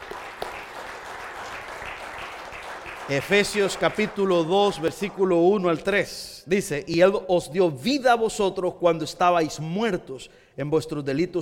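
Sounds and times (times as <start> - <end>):
audience applause: 0.0 - 5.4
speech: 3.1 - 11.4.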